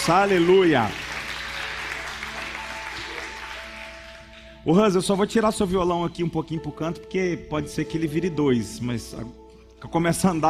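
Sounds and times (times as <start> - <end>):
speech: 0.0 - 1.0, 4.6 - 10.4
crowd applause: 0.0 - 4.6.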